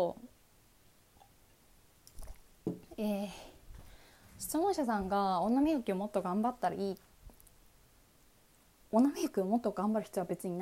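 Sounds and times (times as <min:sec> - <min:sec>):
speech: 0:00.0 - 0:00.3, 0:02.6 - 0:03.5, 0:04.4 - 0:07.1, 0:08.9 - 0:10.5
person sipping tea: 0:02.1 - 0:02.5.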